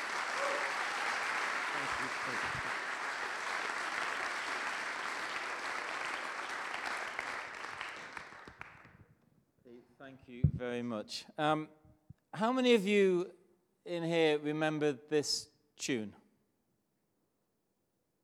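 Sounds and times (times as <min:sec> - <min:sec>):
audience applause greeting a reverend welcomed on stage: 0:00.0 - 0:08.9
speech: 0:02.3 - 0:02.7, 0:10.1 - 0:11.8, 0:12.4 - 0:16.2.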